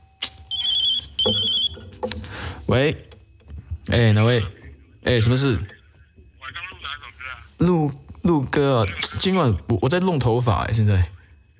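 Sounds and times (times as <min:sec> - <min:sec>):
high shrill electronic phone ring: 0:00.0 - 0:02.0
speech: 0:01.2 - 0:01.6, 0:02.7 - 0:03.2, 0:03.9 - 0:05.8, 0:07.6 - 0:11.2.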